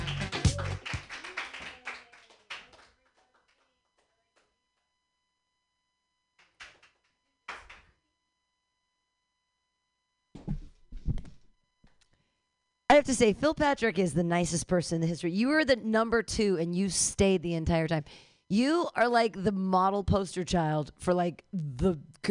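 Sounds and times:
audience applause: 0.0 - 3.6
scattered claps or thumps: 0.0 - 4.6, 6.4 - 8.0
speech: 12.9 - 22.3.

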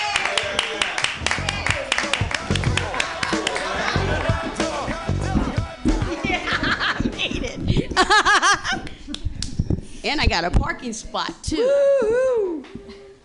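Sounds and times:
audience clapping: 0.0 - 5.0
laughter: 2.7 - 9.0
speech: 10.0 - 12.8.

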